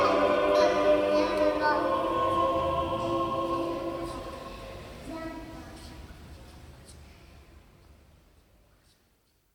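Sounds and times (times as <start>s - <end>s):
benediction in Russian in a church: 0.0s - 5.5s.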